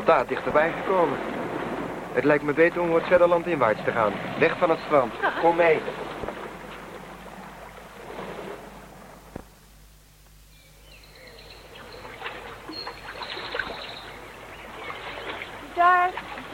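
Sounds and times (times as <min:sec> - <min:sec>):
small freshwater stream babbling and gurgling: 0:00.0 - 0:10.1, 0:10.7 - 0:16.5
speech: 0:00.1 - 0:01.4, 0:02.1 - 0:06.1
faint high chirps: 0:10.5 - 0:14.2.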